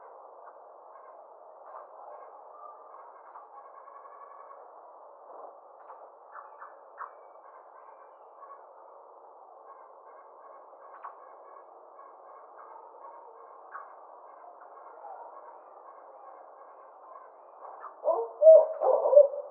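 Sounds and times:
Barred owl giving low hoots: 17.1 - 19.4.

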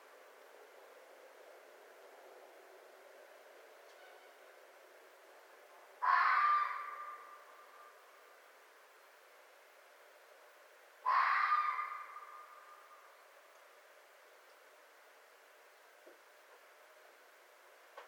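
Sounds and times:
red fox in North America: 6.0 - 8.2, 11.0 - 13.2.

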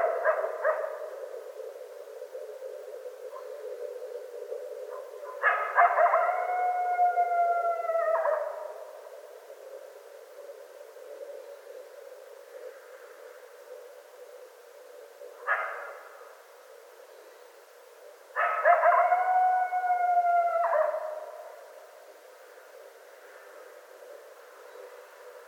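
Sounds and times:
coyote howling: 0.0 - 1.8, 3.2 - 9.1, 18.4 - 21.8.

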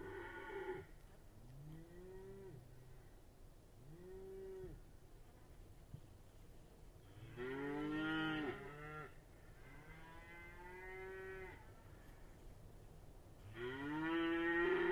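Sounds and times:
cattle: 0.0 - 3.0, 7.0 - 12.4, 13.4 - 14.9.

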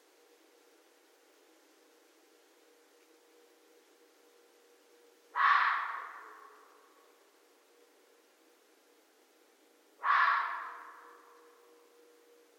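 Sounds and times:
faint constant hum: 0.0 - 12.5
red fox screaming: 5.4 - 6.7, 10.0 - 11.3.

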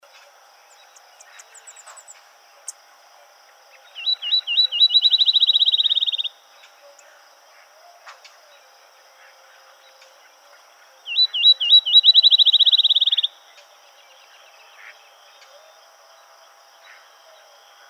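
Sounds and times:
field sparrow singing: 0.7 - 2.8, 3.8 - 6.4, 11.1 - 13.3.

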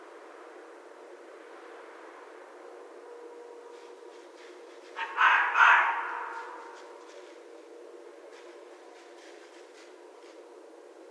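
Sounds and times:
red fox rasping and screeching: 5.0 - 6.8.

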